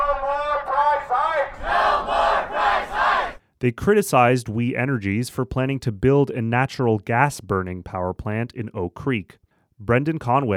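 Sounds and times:
protesters chanting: 0.0s - 3.4s
speech: 3.6s - 10.5s.

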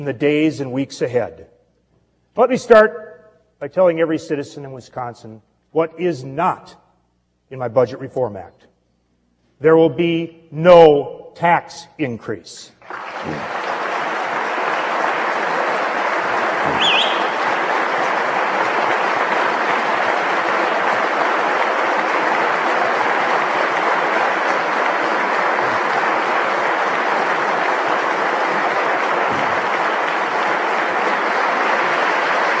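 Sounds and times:
speech: 0.0s - 1.5s, 2.4s - 3.0s, 3.6s - 6.8s, 7.5s - 8.7s, 9.6s - 13.6s
applause from a large crowd in a legislative chamber: 12.8s - 32.5s.

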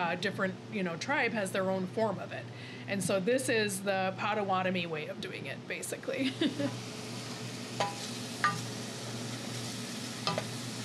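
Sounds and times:
speech: 0.0s - 7.0s
onions sautéing in a pan on a stove for soup: 6.4s - 10.8s.

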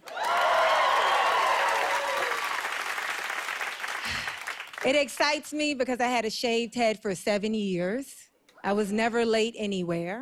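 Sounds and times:
audience whoops and cheers at a stand-up comedy show: 0.0s - 2.8s
audience clapping at a stand-up comedy show: 0.0s - 5.1s
speech: 4.8s - 10.2s.

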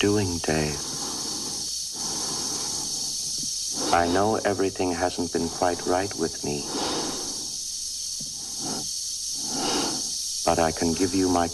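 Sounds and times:
speech: 0.0s - 1.0s, 3.9s - 7.0s, 10.5s - 11.5s
Dave breathing during HAL's disconnection scene: 0.0s - 4.4s, 5.8s - 7.6s, 8.3s - 10.2s
constant hiss of Dave's oxygen supply: 0.0s - 11.5s.

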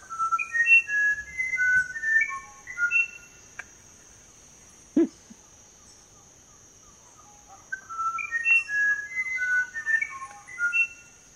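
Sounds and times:
musician wren singing whistled phrases: 0.0s - 3.7s, 6.8s - 11.3s.

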